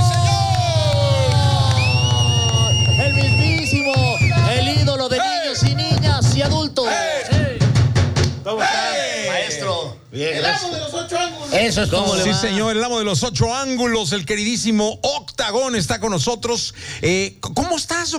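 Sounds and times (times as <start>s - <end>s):
audience applause: 0.0s - 4.8s
audience cheering: 0.0s - 7.7s, 8.5s - 9.7s
drums playing: 0.0s - 8.5s
speech: 10.2s - 18.1s.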